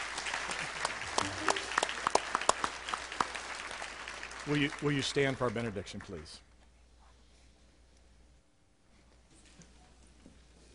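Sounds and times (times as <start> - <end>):
audience applauding: 0.0 - 6.3
speech: 4.5 - 6.5.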